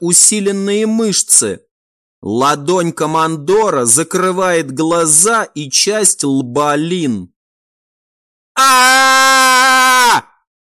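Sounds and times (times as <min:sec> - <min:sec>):
speech: 0:00.0 - 0:07.3, 0:08.6 - 0:10.3
young woman screaming as her face is burned: 0:08.6 - 0:10.3.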